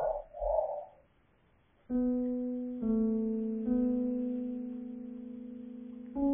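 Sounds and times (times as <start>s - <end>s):
piano: 1.9s - 6.3s.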